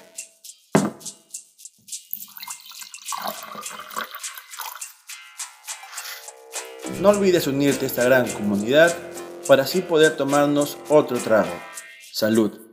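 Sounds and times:
drink pouring into a glass: 2.1 - 5.0
speech: 7.0 - 12.6.

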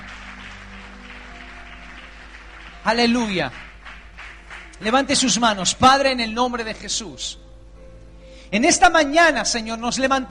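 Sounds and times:
congregation applauding: 0.0 - 5.1
speech: 2.8 - 3.7, 4.8 - 7.5, 8.5 - 10.3.

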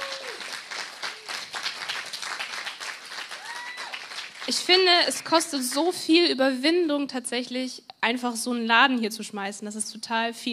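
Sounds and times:
audience applause: 0.0 - 5.4
speech: 4.5 - 10.5.

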